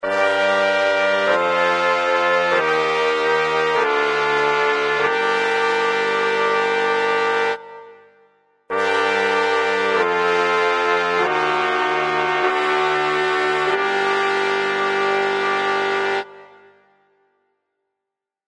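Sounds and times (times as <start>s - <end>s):
trumpet song: 0.0s - 17.1s.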